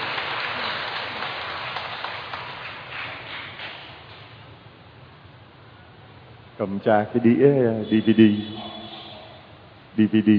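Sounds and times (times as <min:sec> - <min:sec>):
crowd applauding: 0:00.0 - 0:03.8
speech: 0:06.6 - 0:08.7, 0:10.0 - 0:10.3.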